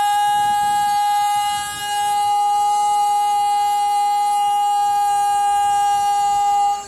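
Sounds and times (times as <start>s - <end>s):
gas delivery truck vendor call tone: 0.2s - 6.8s.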